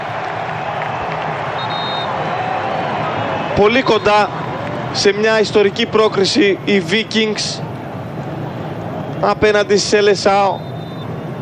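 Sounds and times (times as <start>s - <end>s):
scattered clapping in a stadium crowd: 0.0s - 2.6s, 3.7s - 5.3s
stadium crowd roaring and cheering at a Norway–Brazil football match: 0.0s - 11.3s
speech: 3.6s - 7.7s, 9.2s - 10.7s.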